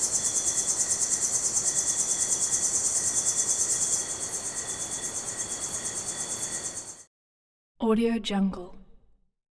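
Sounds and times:
busy crickets in jungle at night: 0.0s - 7.1s.

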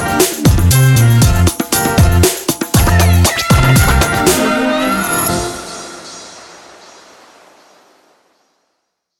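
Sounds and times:
summer hip hop music: 0.0s - 6.3s.

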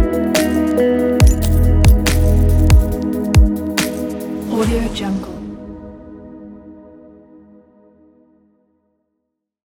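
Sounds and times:
simple ambient sound: 0.0s - 7.2s.

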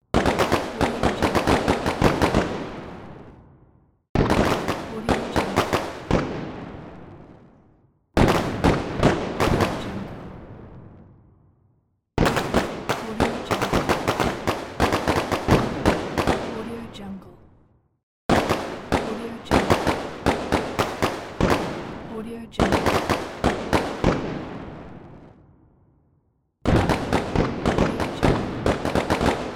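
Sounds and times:
fireworks: 0.1s - 3.6s, 4.2s - 11.3s, 12.2s - 17.2s, 18.3s - 25.6s, 26.6s - 29.5s.

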